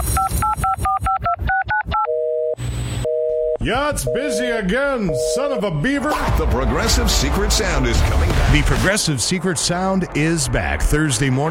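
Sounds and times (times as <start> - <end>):
steady telephone tone: 0.2 - 4.5
speech: 3.6 - 11.4.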